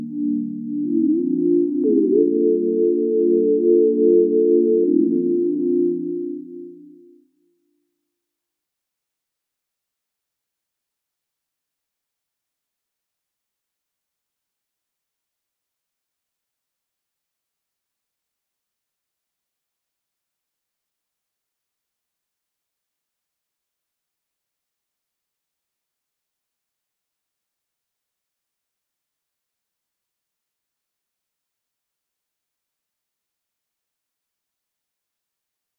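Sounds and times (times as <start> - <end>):
synth pad in G minor: 0.0 - 7.4.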